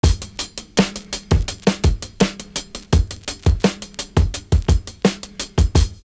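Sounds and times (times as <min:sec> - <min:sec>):
basic sixteenth-note hi-hat loop: 0:00.0 - 0:06.1.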